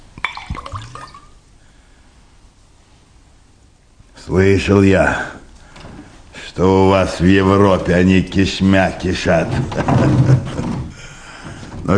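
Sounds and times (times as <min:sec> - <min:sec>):
double scotch being poured: 0:00.2 - 0:01.4
glass clinking: 0:00.2 - 0:01.4
speech: 0:04.3 - 0:05.4, 0:06.6 - 0:10.8.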